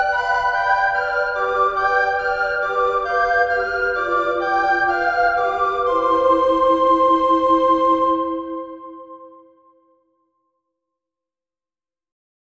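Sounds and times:
recorder trio: 0.0 - 9.1.

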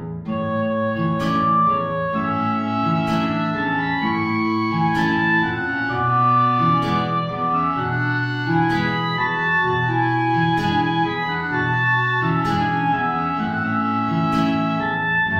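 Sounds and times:
tango music: 0.3 - 15.3.

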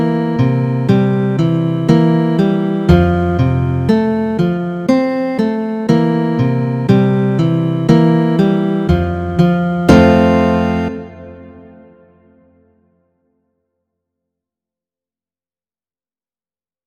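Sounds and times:
guitar method duet: 0.0 - 12.6.

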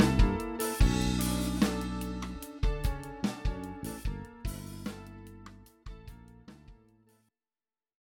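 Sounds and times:
funk groove: 0.0 - 5.5.

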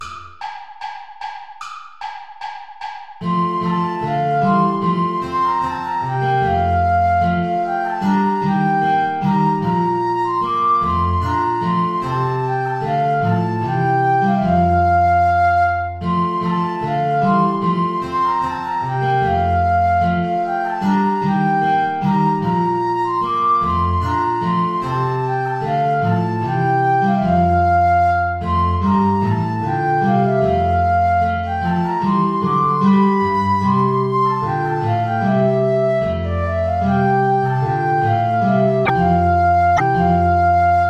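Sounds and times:
ballet play-along backing track without guitar: 0.0 - 40.8.

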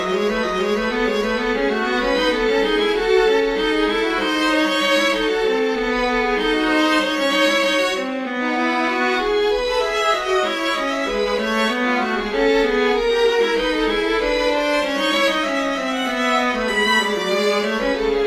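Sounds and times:
canon in major for violin and viola: 0.0 - 18.2.

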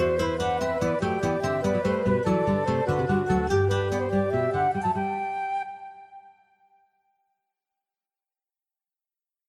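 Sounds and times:
guitars: 0.0 - 5.3
flutes: 0.0 - 7.2.

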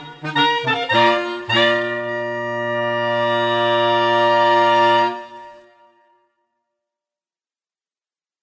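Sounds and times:
fanfare: 0.0 - 6.1.

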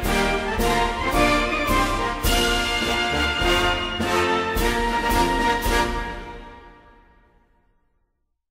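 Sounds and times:
easy organ transcription of a naval anthem: 0.0 - 6.7.

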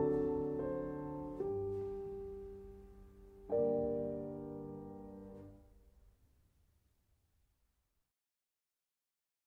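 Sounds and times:
waltz concert arrangement: 0.0 - 5.6.

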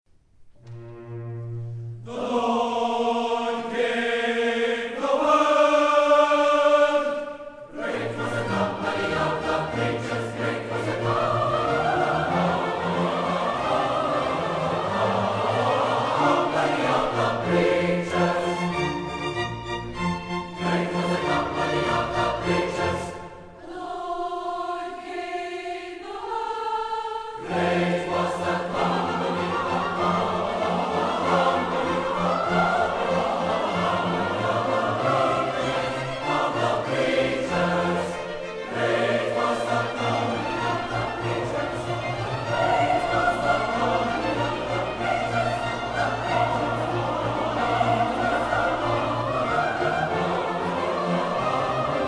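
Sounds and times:
concert choir singing: 0.6 - 52.0.

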